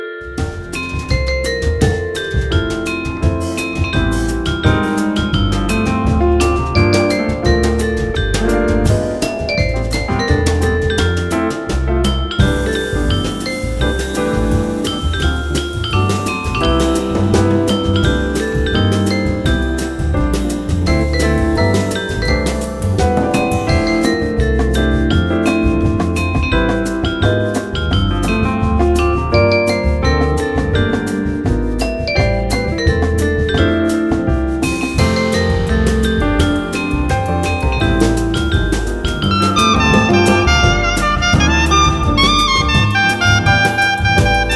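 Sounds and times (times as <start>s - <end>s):
Christmas smooth jazz instrumental: 0.2s - 44.5s.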